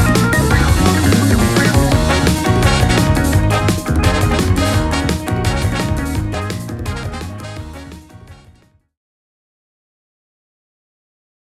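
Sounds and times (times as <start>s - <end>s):
funny beat: 0.0s - 8.4s.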